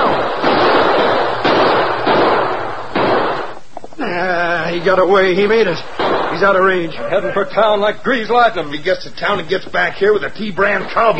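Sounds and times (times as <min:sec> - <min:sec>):
gunshots: 0:00.0 - 0:03.9, 0:04.7 - 0:06.9
laughter: 0:04.0 - 0:05.5, 0:06.4 - 0:10.1
speech: 0:04.2 - 0:11.1.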